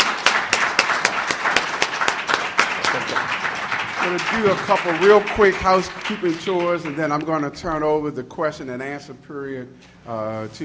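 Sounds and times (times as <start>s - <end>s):
audience applause: 0.0s - 7.3s
speech: 4.0s - 10.6s.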